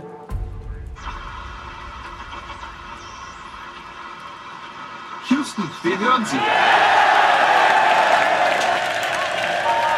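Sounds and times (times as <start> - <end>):
speech: 5.3 - 6.9
crowd cheering in control room: 6.2 - 9.9
clapping: 7.6 - 9.9.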